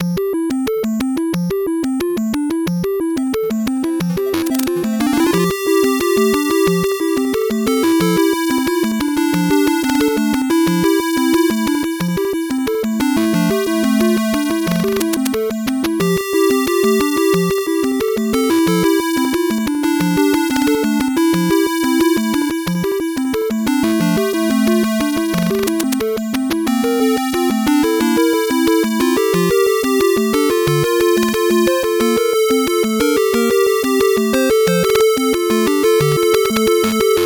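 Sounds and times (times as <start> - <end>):
8-bit background music: 0.0 - 37.2.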